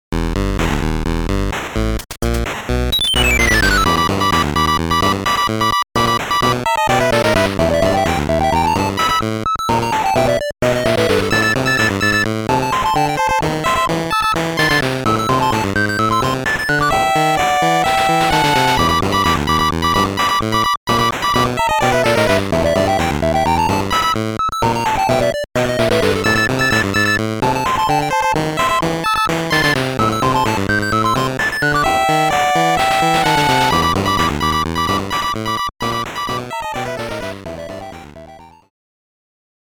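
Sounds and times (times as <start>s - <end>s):
8-bit boss battle music: 0.2s - 38.7s.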